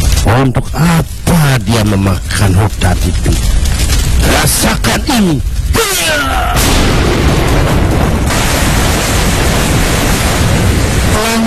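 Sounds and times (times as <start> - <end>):
very heavy rain: 0.0 - 11.4
speech: 0.4 - 3.6, 4.2 - 7.5
loud thunderclap: 6.5 - 11.4.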